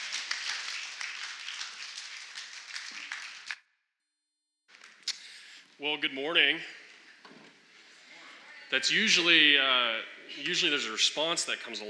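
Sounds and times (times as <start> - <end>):
crowd clapping: 0.0 - 3.6
speech: 5.8 - 6.8, 8.7 - 11.8.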